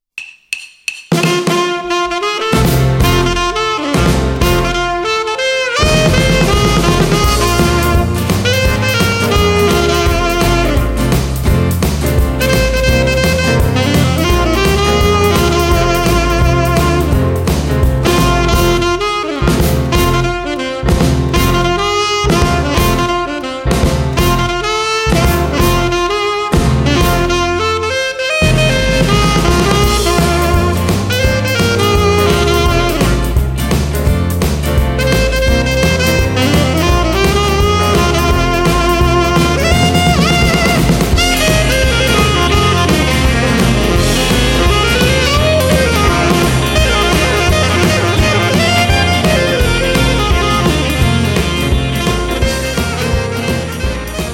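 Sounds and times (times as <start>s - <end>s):
saxophone: 1.2s - 33.8s, 34.4s - 54.3s.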